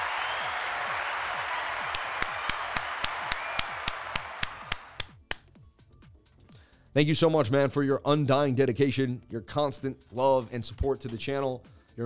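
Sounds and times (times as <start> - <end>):
audience applause: 0.0 - 5.1
speech: 7.0 - 12.0.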